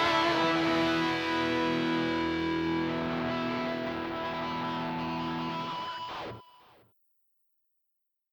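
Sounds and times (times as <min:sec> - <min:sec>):
karaoke full mix: 0:00.0 - 0:06.4.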